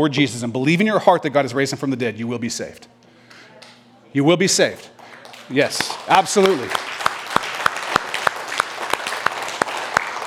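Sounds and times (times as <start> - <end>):
speech: 0.0 - 3.0, 4.1 - 6.8
audience clapping: 4.9 - 10.2.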